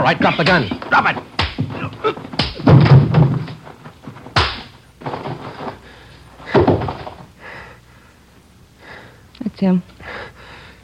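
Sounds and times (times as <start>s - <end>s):
speech: 0.0s - 1.2s, 9.6s - 9.9s
scuffling: 0.0s - 7.3s
blows landing on a man's body: 0.7s - 5.3s.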